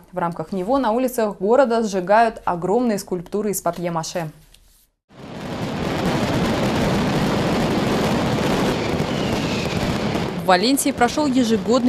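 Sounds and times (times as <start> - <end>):
speech: 0.1 - 4.4, 10.5 - 11.8
fireworks exploding in city streets: 5.2 - 11.8.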